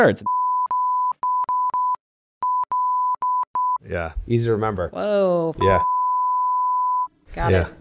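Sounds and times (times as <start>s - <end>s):
speech: 0.0s - 0.4s, 3.8s - 5.9s, 7.4s - 7.8s
censorship bleep over a spoken phone number: 0.2s - 3.8s, 5.6s - 7.1s.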